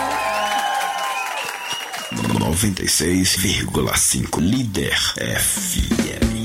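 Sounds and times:
shouts and whoops: 0.0s - 2.1s
crowd clapping and cheering: 0.0s - 2.8s
speech: 2.2s - 6.3s.

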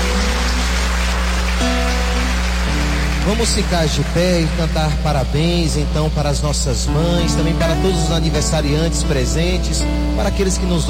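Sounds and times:
audience applauding: 0.0s - 5.6s
speech: 3.3s - 10.8s.

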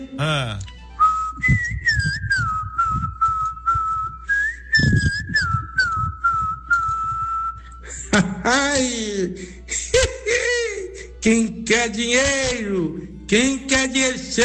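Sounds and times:
speech: 0.0s - 0.7s, 8.2s - 14.4s
person whistling imitation of rufous-bellied thrush song: 1.0s - 7.9s.

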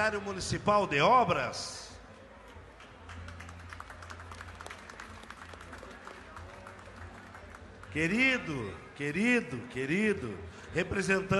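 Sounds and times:
speech: 0.0s - 1.9s, 7.9s - 11.3s
audience applause: 2.8s - 8.2s.

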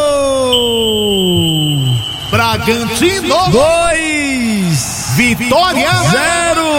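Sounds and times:
referee's long whistle at a Bragantino versus Vitória football match: 0.0s - 5.2s
speech: 2.4s - 3.9s, 4.8s - 6.4s.

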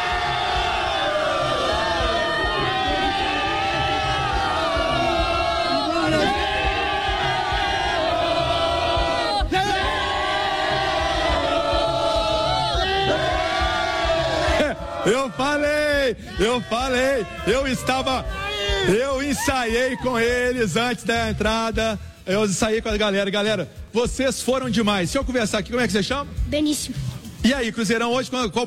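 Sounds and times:
crowd chanting: 0.0s - 15.4s
speech: 15.3s - 28.6s.

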